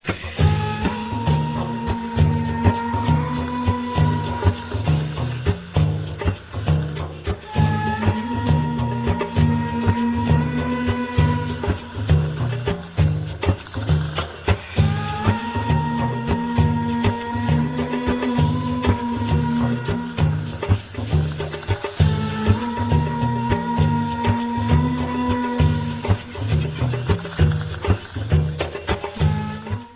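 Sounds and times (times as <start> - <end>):
tar groove: 0.0 - 29.9.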